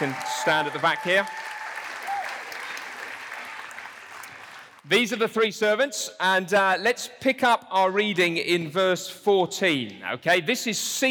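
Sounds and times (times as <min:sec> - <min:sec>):
speech: 0:00.0 - 0:01.4, 0:04.9 - 0:11.0
audience applauding volunteers at the REVIVE 2023 event: 0:00.0 - 0:04.8.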